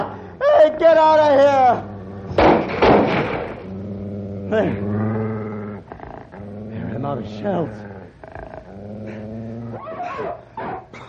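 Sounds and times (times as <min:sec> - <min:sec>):
wolves growling: 0:00.0 - 0:11.0
speech: 0:00.7 - 0:01.9, 0:04.5 - 0:05.0, 0:07.1 - 0:07.9.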